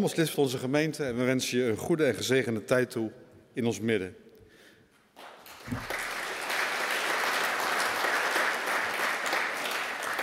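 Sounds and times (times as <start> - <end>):
speech: 0.0 - 4.2, 5.2 - 5.9
audience applause: 5.2 - 10.2.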